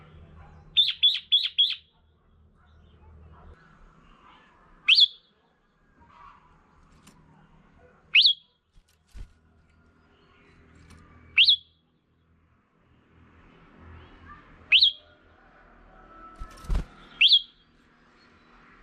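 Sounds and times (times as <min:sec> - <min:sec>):
Red-whiskered bulbul calling: 0:00.8 - 0:01.9, 0:04.9 - 0:05.2, 0:08.1 - 0:08.5, 0:11.4 - 0:11.7, 0:16.6 - 0:17.6.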